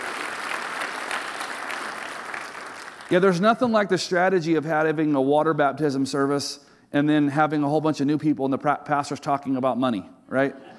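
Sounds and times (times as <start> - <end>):
church audience applauding: 0.0 - 3.1
speech: 3.1 - 10.7.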